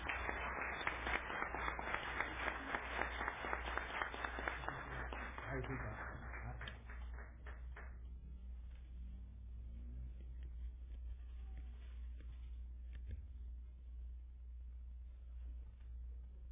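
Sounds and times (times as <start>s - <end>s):
audience applause: 0.0s - 8.0s
low steady hum: 0.0s - 16.5s.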